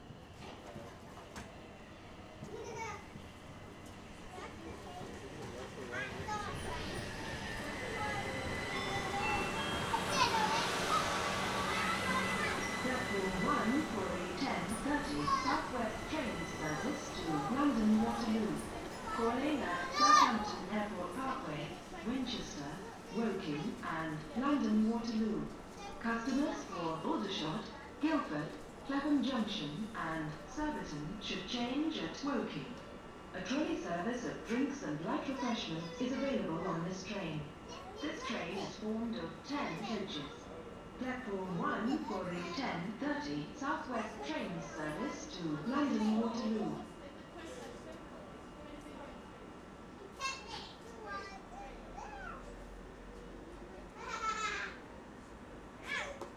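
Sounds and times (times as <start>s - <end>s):
train arriving: 0.0s - 56.3s.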